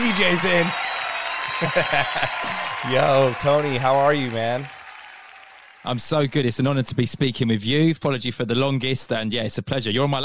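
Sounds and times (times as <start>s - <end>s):
speech: 0.0s - 0.9s, 1.6s - 4.8s, 5.8s - 10.2s
crowd applause: 0.0s - 6.8s
laughter: 1.5s - 4.6s.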